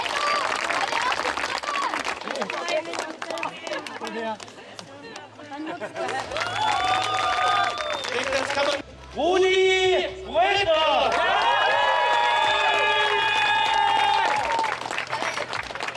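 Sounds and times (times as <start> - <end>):
crowd cheering: 0.0 - 3.8, 6.0 - 8.8, 11.0 - 15.9
crowd applauding at an award ceremony: 0.0 - 4.9, 5.9 - 8.8, 11.1 - 15.9
speech: 4.3 - 4.6, 5.8 - 6.7, 8.5 - 10.8.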